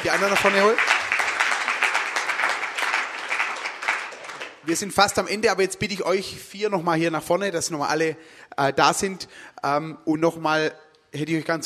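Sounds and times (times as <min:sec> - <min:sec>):
speech: 0:00.0 - 0:01.0, 0:04.7 - 0:11.6
audience clapping: 0:00.0 - 0:05.2.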